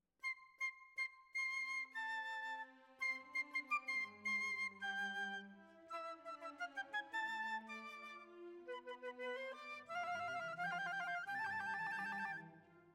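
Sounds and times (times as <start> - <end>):
flute: 0.2 - 12.9.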